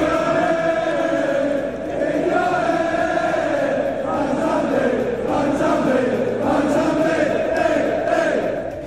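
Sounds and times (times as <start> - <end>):
large crowd of football fans singing a chant: 0.0 - 8.8.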